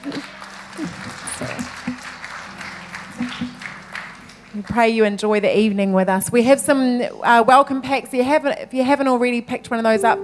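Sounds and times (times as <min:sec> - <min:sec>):
church congregation applauding to welcome guests: 0:00.0 - 0:05.1
speech: 0:04.6 - 0:10.2.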